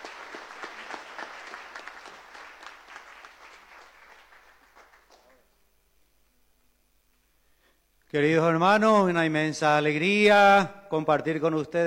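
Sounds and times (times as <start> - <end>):
audience applause: 0.0 - 5.4
speech: 8.1 - 11.8.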